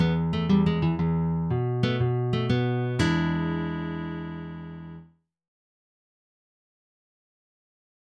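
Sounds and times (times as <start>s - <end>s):
blues in E major picking: 0.0s - 5.0s.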